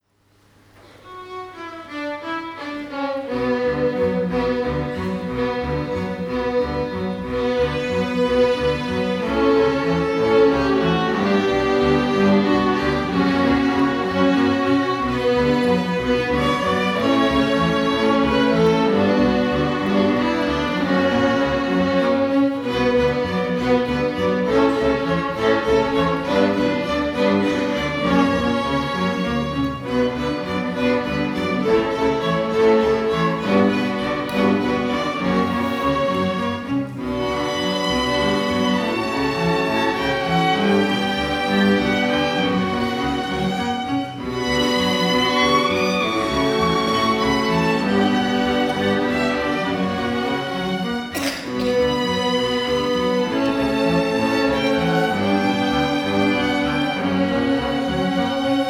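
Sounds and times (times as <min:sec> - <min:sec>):
Spanish violin: 0:00.8 - 0:58.6
chamber orchestra playing: 0:00.8 - 0:58.6.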